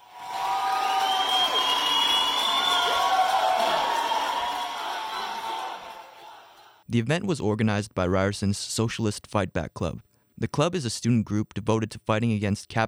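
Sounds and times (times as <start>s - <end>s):
large crowd of students cheering after strike vote: 0.0s - 6.8s
speech: 6.9s - 12.8s.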